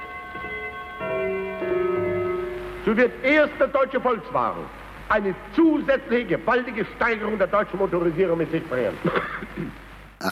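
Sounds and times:
clock gong striking the half hour: 0.0s - 3.0s
speech: 2.8s - 10.3s.

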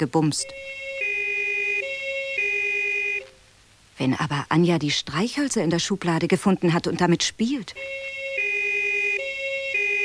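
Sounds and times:
speech: 0.0s - 0.9s, 4.0s - 8.2s
emergency vehicle siren wailing in a two-tone pattern: 0.3s - 3.3s, 7.7s - 10.0s.

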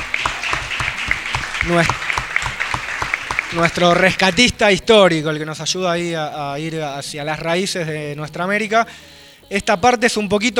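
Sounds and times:
applause: 0.0s - 4.6s
speech: 1.6s - 2.1s, 3.5s - 10.5s.

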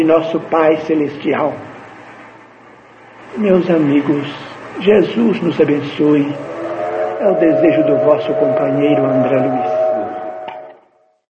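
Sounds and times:
speech: 0.0s - 1.7s, 3.3s - 6.6s, 7.2s - 9.7s
train whistle: 6.1s - 11.2s.

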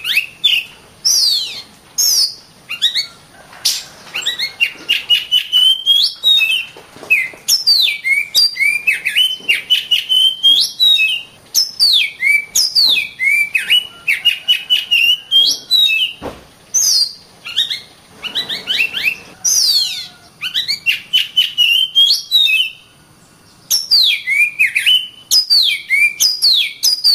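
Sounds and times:
Oriental magpie-robin singing: 0.0s - 27.1s.

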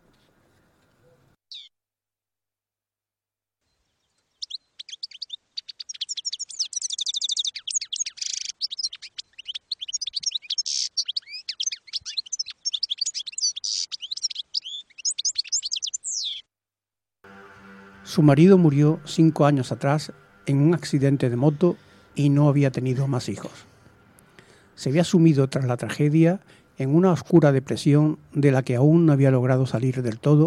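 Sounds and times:
pet goldfinch chirping and singing: 4.3s - 16.4s
speech: 18.2s - 23.7s, 24.8s - 30.4s.

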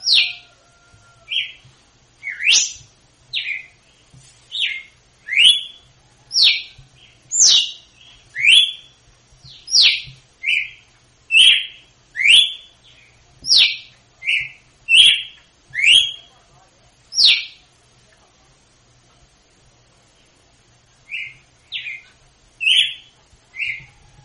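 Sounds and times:
female red-cowled cardinal singing in Northeast Brazil style: 0.0s - 0.5s, 2.2s - 2.8s, 4.5s - 5.8s, 6.4s - 8.9s, 9.7s - 12.7s, 13.5s - 16.3s, 17.1s - 17.6s, 21.1s - 24.0s.

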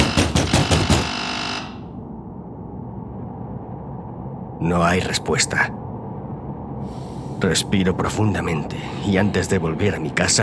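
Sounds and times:
fists pounding on a door: 0.0s - 1.1s
speech: 4.6s - 5.8s, 7.4s - 10.4s.

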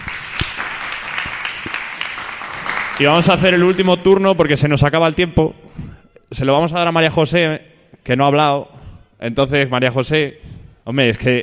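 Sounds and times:
group applause greeting a radio guest: 0.0s - 4.0s
speech: 3.0s - 5.6s, 6.3s - 11.4s.

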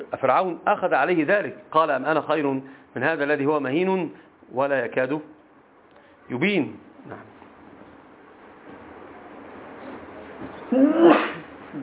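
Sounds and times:
low steady noise: 0.0s - 11.8s
speech: 0.2s - 5.4s, 6.3s - 7.3s
loud explosive sneeze: 10.7s - 11.8s.

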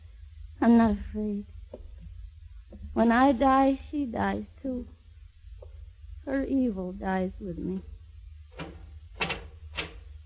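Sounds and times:
speech: 0.6s - 1.6s, 3.0s - 5.0s, 6.3s - 7.9s
door opening: 8.5s - 10.2s.

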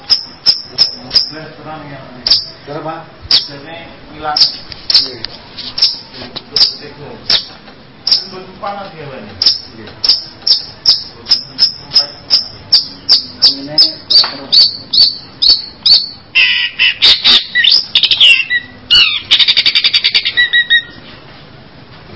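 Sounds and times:
bird singing: 0.0s - 1.4s, 2.2s - 2.6s, 8.1s - 8.3s, 9.4s - 21.1s.

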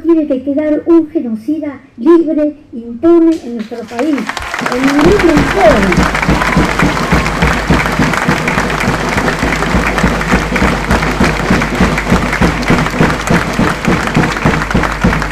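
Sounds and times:
speech: 0.1s - 7.1s
audience applause: 3.8s - 15.3s.

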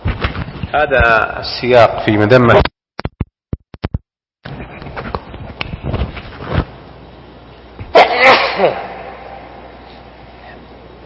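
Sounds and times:
speech: 0.7s - 2.7s
loud explosive sneeze: 7.9s - 9.4s.

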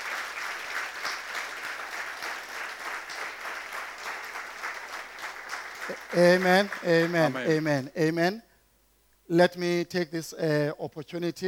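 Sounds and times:
audience clapping hands: 0.0s - 7.6s
speech: 5.9s - 8.5s, 9.3s - 11.4s.

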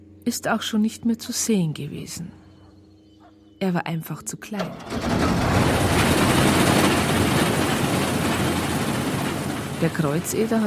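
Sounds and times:
speech: 0.2s - 2.4s, 3.6s - 5.8s, 9.8s - 10.6s
combine harvester engine starting with a loud low rumble: 4.4s - 10.6s
continuous mechanical rattling of a combine harvester driving forward: 4.6s - 10.6s.

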